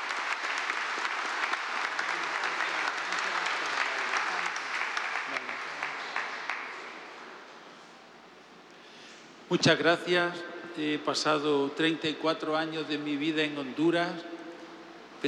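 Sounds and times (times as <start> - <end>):
large crowd applauding: 0.0 - 7.3
speech: 9.5 - 14.4.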